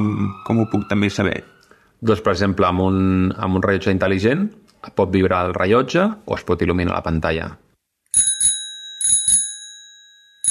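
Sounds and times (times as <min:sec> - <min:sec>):
speech: 0:00.0 - 0:07.6
bicycle bell ringing: 0:08.2 - 0:10.5.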